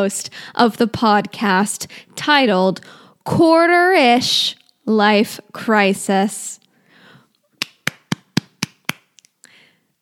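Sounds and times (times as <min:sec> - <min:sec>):
speech: 0:00.0 - 0:06.6
hands clapping: 0:07.6 - 0:09.3.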